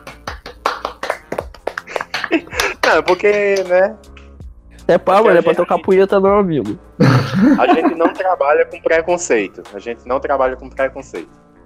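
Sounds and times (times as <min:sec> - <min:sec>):
scattered hand claps: 0:00.0 - 0:04.4
laughter: 0:01.8 - 0:03.4, 0:05.2 - 0:05.9, 0:07.0 - 0:08.6
speech: 0:02.3 - 0:04.1, 0:04.9 - 0:11.6.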